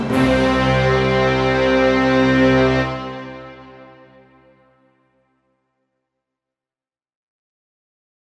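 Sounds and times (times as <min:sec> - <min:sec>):
symphony orchestra: 0:00.0 - 0:04.9.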